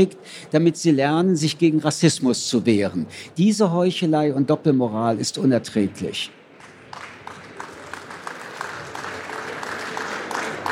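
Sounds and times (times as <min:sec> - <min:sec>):
speech: 0:00.0 - 0:07.0
audience applause: 0:06.6 - 0:10.7.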